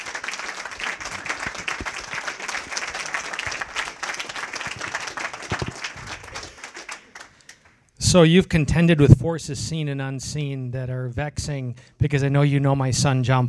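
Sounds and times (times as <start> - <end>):
audience applause: 0.0 - 7.8
speech: 8.1 - 13.4.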